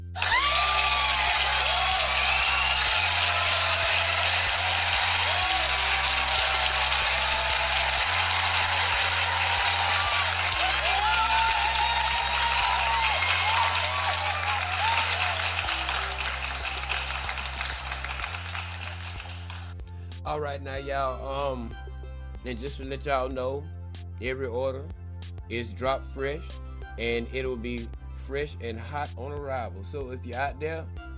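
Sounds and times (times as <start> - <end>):
crowd applause and cheering: 0.0 - 19.8
pulsing bass beat: 0.0 - 23.0
speech: 20.6 - 31.1.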